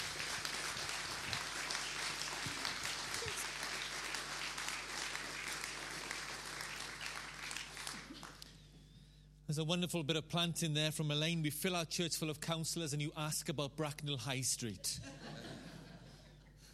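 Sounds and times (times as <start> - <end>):
applause: 0.0 - 8.6
speech: 9.5 - 15.2
laughter: 14.9 - 16.4.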